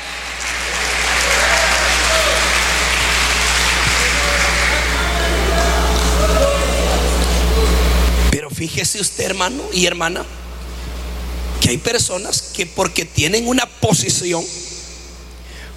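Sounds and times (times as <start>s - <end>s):
audience clapping: 0.0s - 8.2s
speech: 8.8s - 10.4s, 11.6s - 14.7s.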